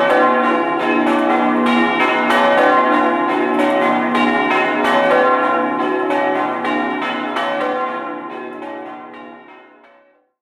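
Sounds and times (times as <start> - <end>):
bells ringing in Spilimbergo: 0.0 - 10.1.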